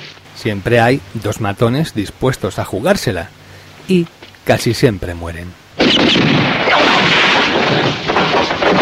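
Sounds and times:
speech: 0:00.4 - 0:08.1
rapid gunfire in a shootout: 0:05.8 - 0:08.7.

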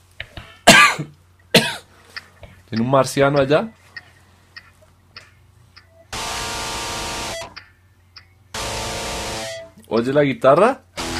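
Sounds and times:
harsh static-like hiss: 0:00.0 - 0:11.1
metronome ticking: 0:02.2 - 0:11.1
speech: 0:02.7 - 0:03.8, 0:10.0 - 0:10.8.

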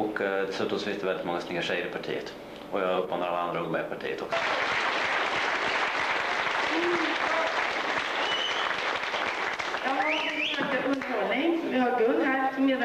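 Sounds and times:
speech: 0:00.2 - 0:04.9, 0:11.2 - 0:12.8
audience applause: 0:04.3 - 0:11.2
voices and whistles: 0:08.1 - 0:10.8.

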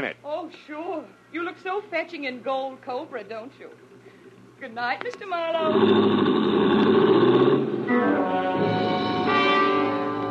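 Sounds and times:
speech: 0:00.0 - 0:03.9, 0:04.6 - 0:07.1
car engine gunned, speeding away: 0:05.6 - 0:10.2.

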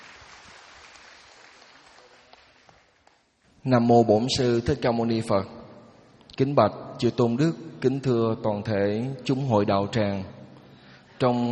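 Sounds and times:
audience applause: 0:00.0 - 0:03.3
speech: 0:03.6 - 0:05.6, 0:06.4 - 0:10.4, 0:11.2 - 0:11.5.

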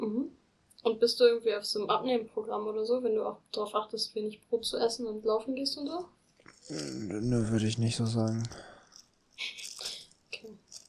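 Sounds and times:
speech: 0:00.8 - 0:08.7, 0:09.4 - 0:09.6
small plastic bag holding two screws crinkling: 0:08.4 - 0:10.8
two screws rattling in a small plastic bag: 0:08.8 - 0:10.8.

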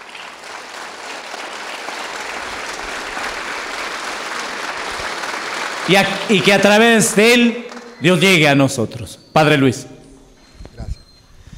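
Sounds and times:
church congregation applauding loudly during a Eucharist Mass: 0:00.0 - 0:08.8
speech: 0:05.9 - 0:09.9.

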